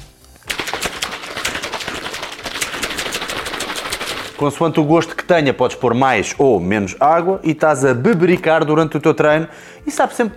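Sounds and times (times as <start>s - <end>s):
drink shaker bottle shaken vigorously: 0.4s - 4.6s
speech: 4.4s - 10.3s.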